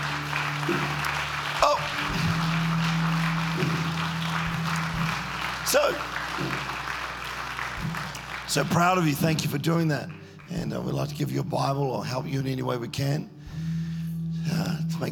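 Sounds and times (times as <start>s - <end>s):
audience applause: 0.0s - 10.4s
low hum: 0.0s - 11.5s
speech: 0.7s - 0.9s, 5.7s - 6.6s, 8.5s - 13.4s, 14.4s - 15.1s.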